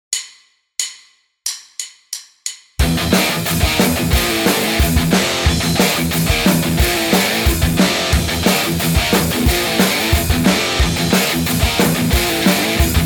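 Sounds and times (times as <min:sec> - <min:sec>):
guitar riff: 0:02.8 - 0:13.0.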